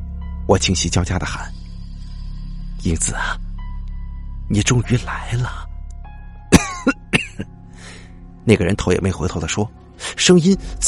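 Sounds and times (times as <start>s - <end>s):
speech: 0.5s - 1.6s, 2.8s - 3.4s, 4.5s - 5.7s, 8.5s - 10.8s
harsh rasping coughing: 6.5s - 7.5s.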